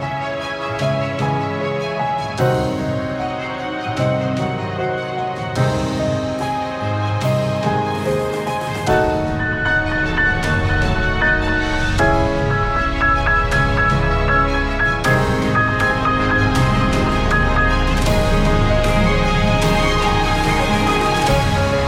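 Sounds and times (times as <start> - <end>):
felt piano on tape: 0.0 - 21.8.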